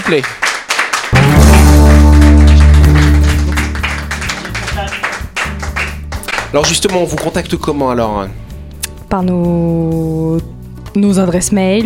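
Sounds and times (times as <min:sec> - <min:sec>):
crowd applause: 0:00.0 - 0:07.6
speech: 0:00.1 - 0:00.5, 0:06.5 - 0:08.4, 0:09.1 - 0:11.8
loud sustained low musical chord: 0:01.2 - 0:05.0.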